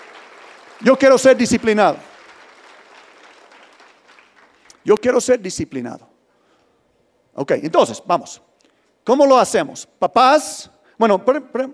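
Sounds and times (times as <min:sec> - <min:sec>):
crowd applause: 0:00.0 - 0:04.8
speech: 0:00.8 - 0:02.1, 0:04.8 - 0:06.1, 0:07.4 - 0:11.7.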